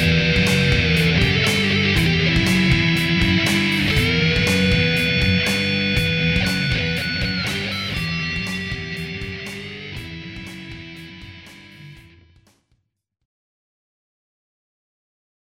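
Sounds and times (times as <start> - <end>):
metal music: 0.0 - 12.4.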